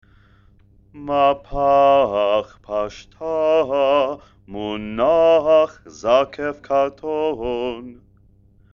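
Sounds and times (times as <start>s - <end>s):
person chanting haftarah with trope: 1.0s - 8.0s.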